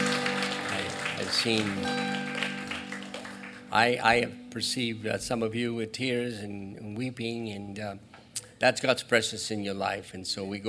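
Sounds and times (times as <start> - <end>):
audience clapping: 0.0 - 4.0
speech: 1.3 - 2.1, 3.7 - 10.6.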